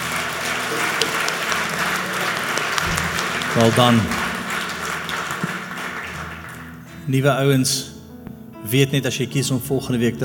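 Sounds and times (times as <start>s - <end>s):
crowd clapping: 0.0s - 6.9s
speech: 3.6s - 4.2s, 7.1s - 7.9s, 8.6s - 10.2s.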